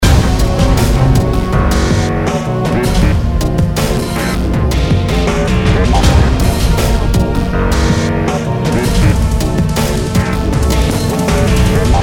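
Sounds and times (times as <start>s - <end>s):
music loop: 0.0s - 12.0s.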